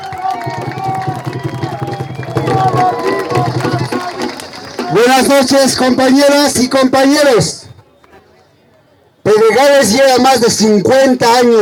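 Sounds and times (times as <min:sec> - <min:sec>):
audience applause: 0:00.0 - 0:05.3
speech: 0:05.0 - 0:07.6, 0:09.6 - 0:11.6.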